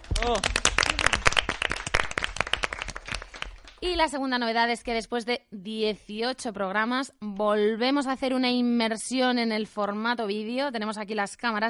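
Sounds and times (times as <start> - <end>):
studio audience applause: 0.0 - 3.8
speech: 0.2 - 0.6, 3.8 - 11.6.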